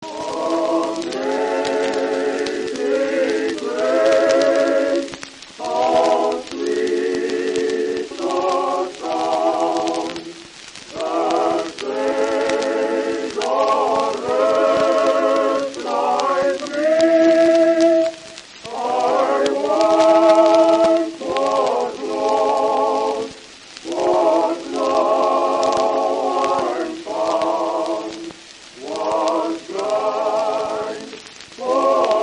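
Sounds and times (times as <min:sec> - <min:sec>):
creepy hymn: 0:00.0 - 0:32.2.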